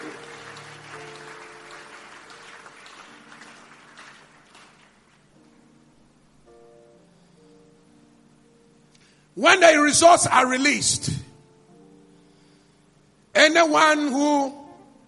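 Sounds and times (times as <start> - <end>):
audience clapping hands: 0.0 - 5.4
speech: 9.4 - 11.3, 13.6 - 14.6.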